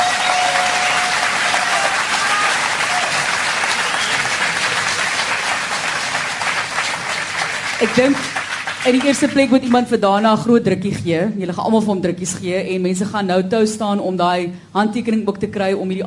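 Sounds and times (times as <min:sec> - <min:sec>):
audience clapping: 0:00.0 - 0:09.9
speech: 0:07.8 - 0:16.0.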